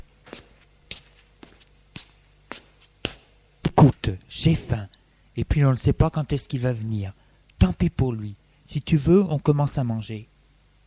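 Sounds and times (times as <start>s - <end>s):
footsteps of a woman walking: 0.0s - 3.8s
speech: 3.8s - 10.3s.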